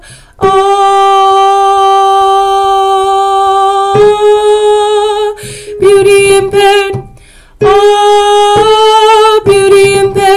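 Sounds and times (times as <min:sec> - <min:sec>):
altos singing: 0:00.4 - 0:10.3.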